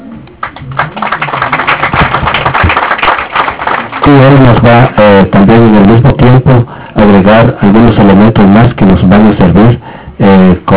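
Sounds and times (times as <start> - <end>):
audience applause: 0.4 - 4.5
speech: 4.1 - 10.7.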